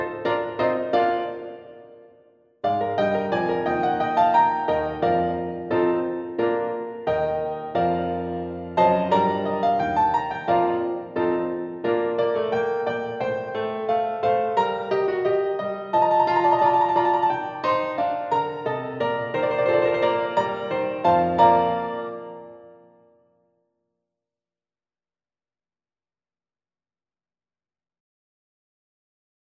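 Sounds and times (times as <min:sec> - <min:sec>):
instrumental music: 0:00.0 - 0:23.3.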